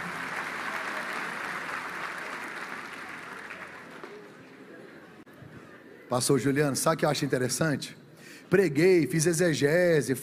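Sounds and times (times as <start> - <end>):
audience applauding: 0.0 - 4.7
speech: 6.1 - 10.2.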